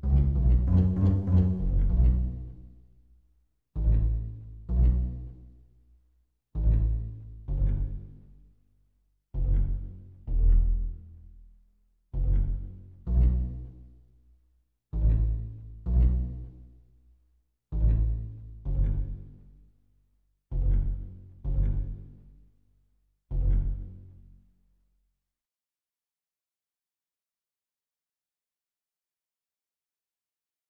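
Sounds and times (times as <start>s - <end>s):
pizzicato strings: 0.0s - 3.0s, 3.8s - 5.7s, 6.6s - 8.4s, 9.4s - 11.4s, 12.1s - 14.1s, 15.0s - 16.8s, 17.7s - 19.7s, 20.5s - 22.6s, 23.3s - 24.1s.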